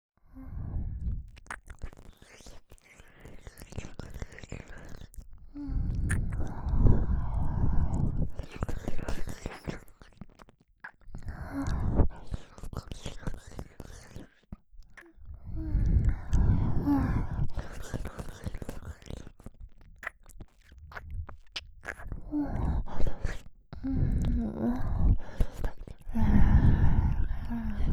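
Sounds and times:
ear licking sounds: 1.3 - 27.9.

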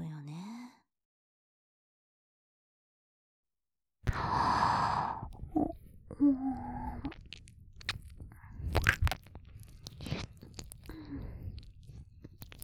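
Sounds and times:
ear licking ASMR: 4.1 - 12.6.

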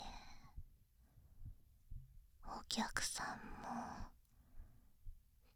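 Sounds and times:
heartbeat recorded with binaural microphone for sleep induction ASMR: 1.3 - 4.2.

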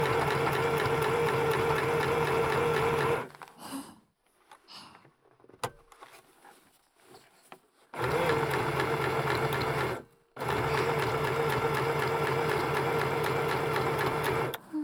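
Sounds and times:
sewing machine sewing a costume: 0.0 - 3.4, 8.0 - 14.7.

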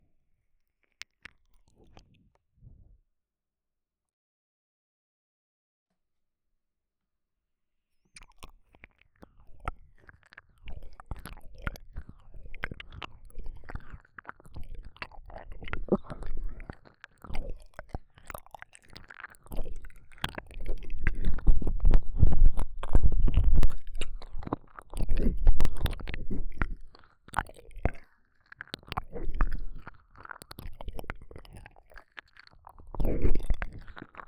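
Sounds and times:
ear licking in right ear, left ear and both ears: 8.2 - 34.2.

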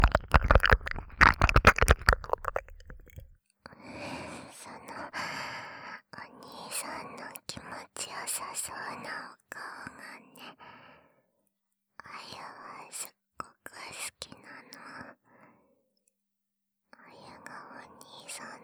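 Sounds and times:
ASMR ear licking sounds: 0.0 - 3.3.

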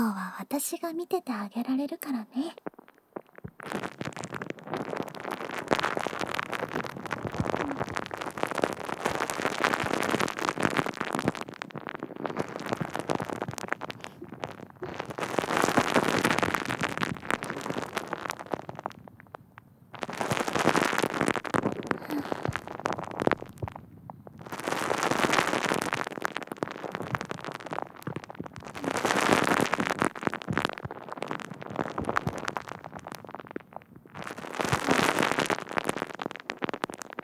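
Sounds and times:
foam bubbles crackling and popping: 0.0 - 37.2
speech: 0.4 - 2.7, 3.6 - 4.1.

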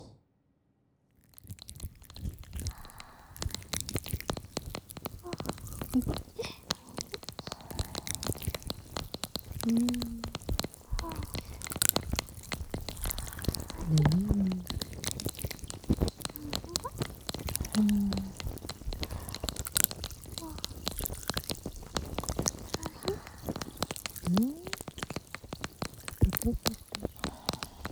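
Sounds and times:
cream being handled: 1.3 - 27.8
carbonated cotton swab: 1.4 - 27.8
tapping: 1.4 - 27.8.

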